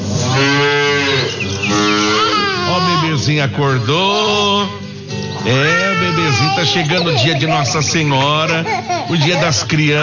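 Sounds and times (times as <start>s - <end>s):
dairy cow mooing at morning milking time: 0.2s - 3.2s
speech: 3.3s - 4.8s, 5.4s - 10.0s
laughter: 5.5s - 10.0s.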